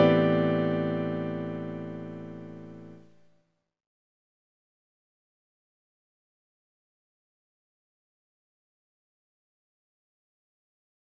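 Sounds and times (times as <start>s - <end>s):
dreamy piano sounds: 0.0s - 3.0s.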